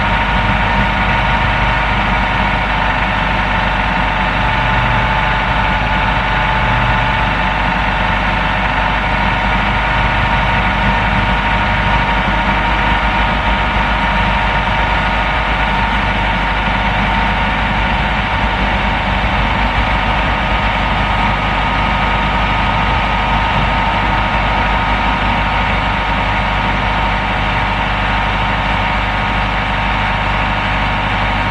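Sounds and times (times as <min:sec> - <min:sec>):
car engine: 0:00.0 - 0:31.4.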